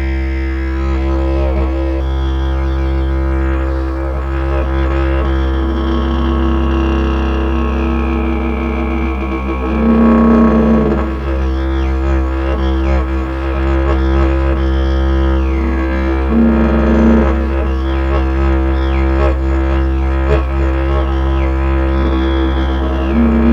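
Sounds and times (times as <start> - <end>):
didgeridoo in do at 65 Hz: 0.0 - 23.5.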